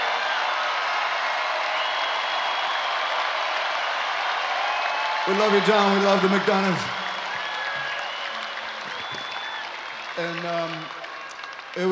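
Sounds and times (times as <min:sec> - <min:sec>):
audience applause: 0:00.0 - 0:11.9
speech: 0:05.3 - 0:07.0, 0:10.2 - 0:11.0, 0:11.7 - 0:11.9.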